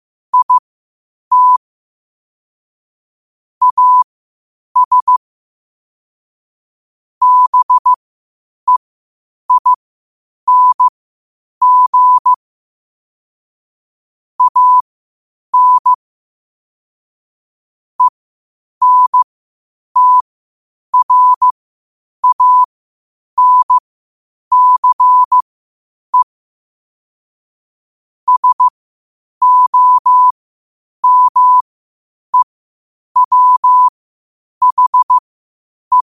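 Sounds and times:
morse code at 5 wpm: 0.4 - 0.6, 1.3 - 1.6, 3.6 - 4.0, 4.8 - 5.2, 7.2 - 8.0, 9.5 - 9.8, 10.5 - 10.9, 11.6 - 12.4, 14.4 - 14.8, 15.6 - 16.0, 18.8 - 19.2, 20.0 - 20.2, 21.0 - 21.5, 22.2 - 22.7, 23.4 - 23.8, 24.5 - 25.4, 28.3 - 28.7, 29.4 - 30.3, 31.0 - 31.6, 33.2 - 33.9, 34.6 - 35.2.

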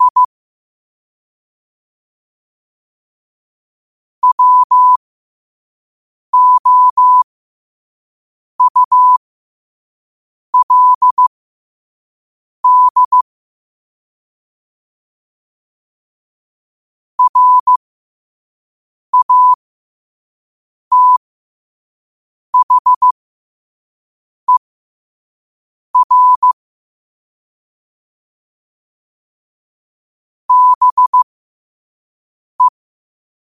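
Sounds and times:
morse code at 5 wpm: 0.0 - 0.3, 4.2 - 5.0, 6.4 - 7.2, 8.6 - 9.2, 10.6 - 11.3, 12.6 - 13.2, 17.2 - 17.8, 19.2 - 19.6, 20.9 - 21.2, 22.6 - 23.2, 26.0 - 26.6, 30.5 - 31.3.

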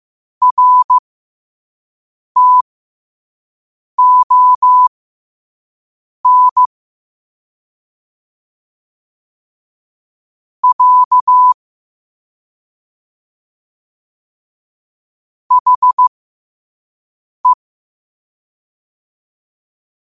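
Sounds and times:
morse code at 5 wpm: 0.4 - 1.0, 2.4 - 2.6, 4.0 - 4.9, 6.3 - 6.7, 10.6 - 11.6, 15.5 - 16.1.

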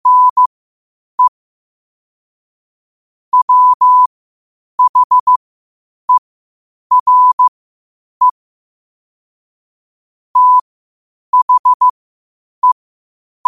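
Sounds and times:
morse code at 5 wpm: 0.0 - 0.5, 3.3 - 4.1, 4.8 - 5.4, 6.9 - 7.5, 10.4 - 10.6, 11.4 - 11.9.

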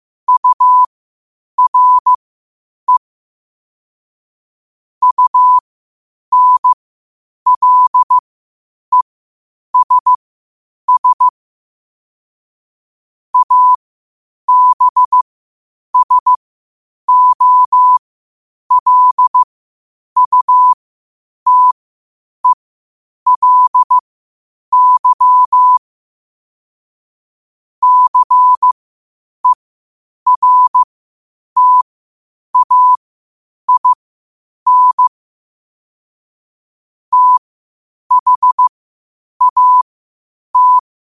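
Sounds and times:
morse code at 5 wpm: 0.3 - 0.9, 1.6 - 2.1, 5.0 - 5.6, 6.3 - 6.8, 7.5 - 8.2, 9.8 - 10.2, 10.9 - 11.3, 13.4 - 13.8, 14.5 - 15.2, 16.0 - 16.4, 17.1 - 18.0, 18.7 - 19.5, 20.2 - 20.8, 21.5 - 21.8, 23.3 - 24.0, 24.7 - 25.8, 27.8 - 28.8, 30.3 - 30.9, 31.6 - 31.9, 32.6 - 33.0, 33.7 - 34.0, 34.7 - 35.1, 37.1 - 37.4, 38.1 - 38.7, 39.4 - 39.9, 40.6 - 40.9.

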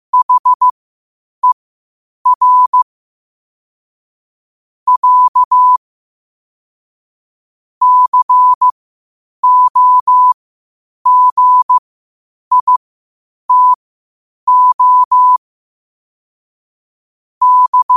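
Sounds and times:
morse code at 5 wpm: 0.2 - 0.7, 2.3 - 2.8, 4.9 - 5.8, 7.8 - 8.7, 9.4 - 10.4, 11.1 - 11.8, 12.5 - 12.8, 13.5 - 13.8, 14.5 - 15.4, 17.4 - 17.9.

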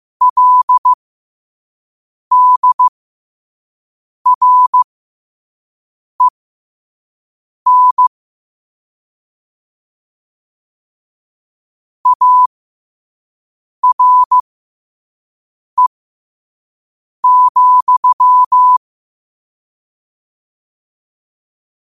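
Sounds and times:
morse code at 5 wpm: 0.2 - 1.0, 2.3 - 2.9, 4.3 - 4.9, 7.7 - 8.1, 12.1 - 12.5, 13.8 - 14.4, 17.2 - 18.8.

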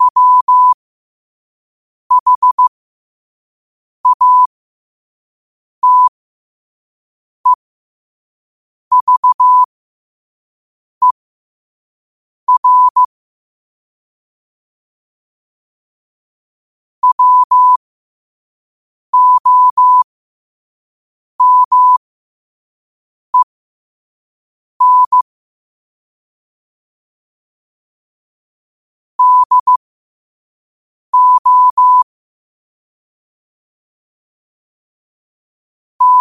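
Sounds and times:
morse code at 5 wpm: 0.0 - 0.8, 2.1 - 2.7, 4.1 - 4.5, 5.8 - 6.1, 8.9 - 9.7, 12.5 - 13.1, 17.0 - 17.8, 19.2 - 20.0, 21.4 - 22.0, 24.8 - 25.2, 29.2 - 29.8, 31.2 - 32.1, 36.0 - 36.1.

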